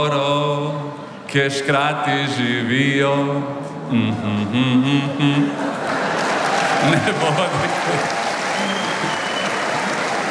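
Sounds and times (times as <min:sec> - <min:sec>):
speech: 0:00.0 - 0:00.6, 0:01.3 - 0:05.7, 0:06.8 - 0:08.2
laughter: 0:04.2 - 0:10.2
audience clapping: 0:05.6 - 0:10.2.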